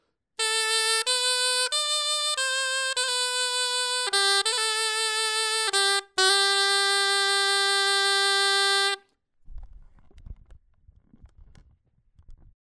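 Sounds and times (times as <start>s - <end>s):
clarinet etude: 0.4s - 9.0s.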